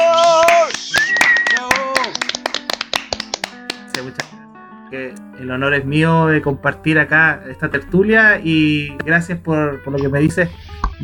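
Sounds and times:
applause: 0:00.0 - 0:04.4
speech: 0:04.0 - 0:04.3, 0:04.9 - 0:11.0.

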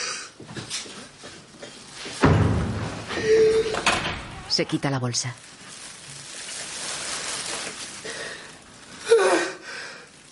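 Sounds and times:
body dropping to the floor: 0:02.1 - 0:04.1
person moaning and groaning: 0:03.1 - 0:03.9, 0:09.1 - 0:09.6
speech: 0:04.5 - 0:05.5.

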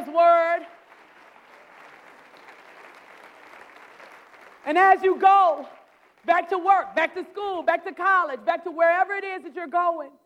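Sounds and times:
audience clapping hands in praise: 0:00.0 - 0:07.5
speech: 0:04.7 - 0:10.2.

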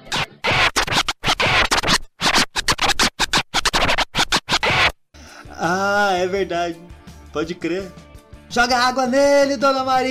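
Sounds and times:
turntable record scratch: 0:00.0 - 0:05.0
speech: 0:05.6 - 0:10.1.

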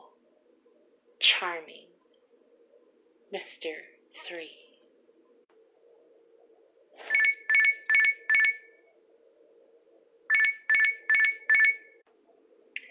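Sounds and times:
faint steady hum: 0:00.0 - 0:12.8
speech: 0:01.2 - 0:01.9, 0:03.3 - 0:04.6
alarm clock ringing with electronic warbling tones: 0:07.1 - 0:08.6, 0:10.3 - 0:11.8.

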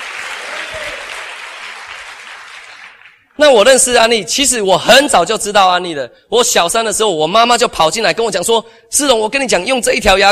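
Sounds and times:
audience applause: 0:00.0 - 0:03.2
speech: 0:03.4 - 0:10.3.

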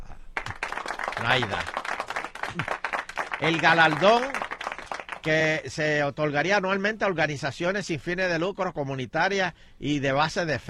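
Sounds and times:
room full of people applauding: 0:00.4 - 0:05.6
speech: 0:01.2 - 0:01.8, 0:02.5 - 0:02.8, 0:03.4 - 0:04.4, 0:05.2 - 0:10.6.

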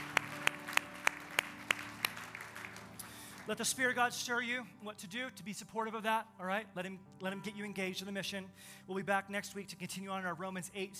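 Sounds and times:
audience clapping in unison: 0:00.0 - 0:03.9
speech: 0:03.5 - 0:10.9.

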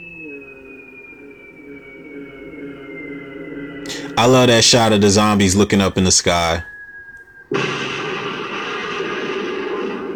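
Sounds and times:
speech: 0:04.2 - 0:06.7
air strike explosion in a zombie film: 0:07.5 - 0:10.1.

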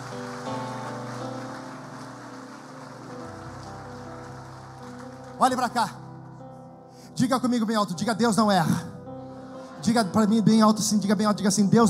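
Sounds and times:
audience applause: 0:00.0 - 0:06.4
speech: 0:05.4 - 0:06.0, 0:07.2 - 0:08.9, 0:09.8 - 0:11.8.

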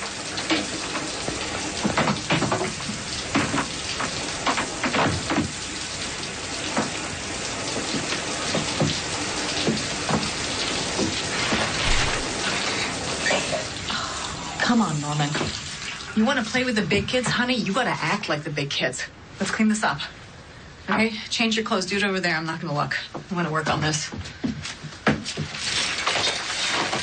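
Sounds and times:
water running from a faucet: 0:00.0 - 0:17.9, 0:25.5 - 0:27.0
speech: 0:16.2 - 0:20.2, 0:20.9 - 0:24.5.

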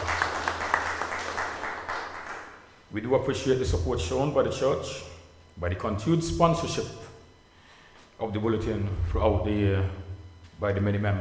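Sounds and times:
audience applause: 0:00.0 - 0:02.6
speech: 0:02.9 - 0:07.0, 0:08.2 - 0:10.0, 0:10.6 - 0:11.1.

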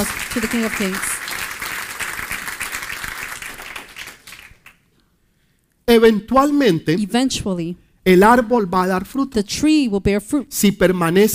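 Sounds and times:
speech: 0:00.0 - 0:01.2, 0:05.9 - 0:11.3
loud audience applause: 0:00.0 - 0:04.8.

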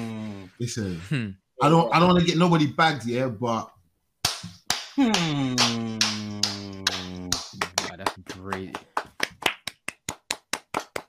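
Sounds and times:
speech: 0:00.6 - 0:03.8, 0:05.0 - 0:06.3, 0:08.5 - 0:08.8
hand claps: 0:04.2 - 0:11.0.

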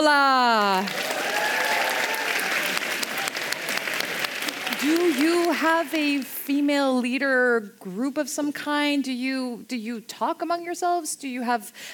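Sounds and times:
speech: 0:00.0 - 0:01.2, 0:04.8 - 0:11.9
audience applause: 0:00.8 - 0:06.3.

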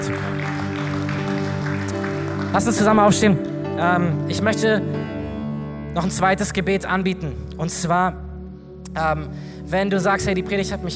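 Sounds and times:
audience applause: 0:00.0 - 0:03.4
sustained held musical chord: 0:00.0 - 0:10.9
speech: 0:02.5 - 0:05.0, 0:06.0 - 0:08.2, 0:09.0 - 0:10.9.

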